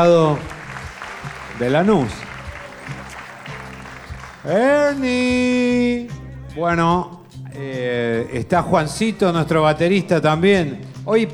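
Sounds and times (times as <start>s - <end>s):
speech: 0.0s - 0.6s, 1.6s - 2.3s, 4.4s - 11.3s
audience applause: 0.0s - 5.2s.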